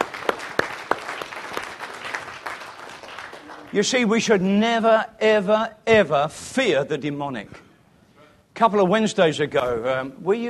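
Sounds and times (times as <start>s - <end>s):
audience clapping: 0.0s - 4.1s
speech: 3.7s - 7.6s, 8.6s - 10.4s.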